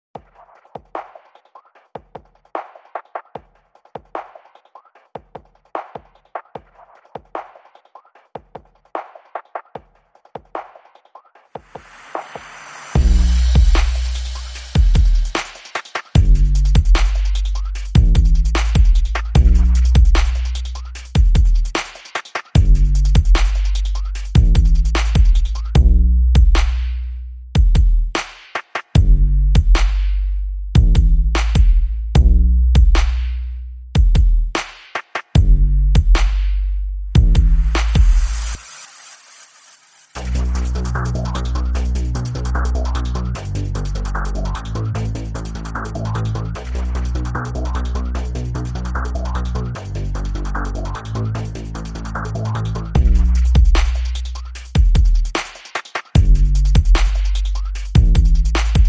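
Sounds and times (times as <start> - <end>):
drums: 0.1 - 27.0, 27.6 - 58.8
bass: 12.8 - 15.5, 16.2 - 21.8, 22.6 - 28.2, 29.0 - 34.6, 35.4 - 38.6, 40.2 - 55.4, 56.2 - 58.8.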